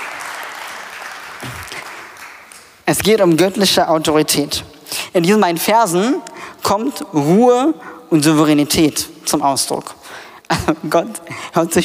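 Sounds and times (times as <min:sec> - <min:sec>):
audience applause for a helper during a talk: 0:00.0 - 0:02.8
speech: 0:02.9 - 0:11.8.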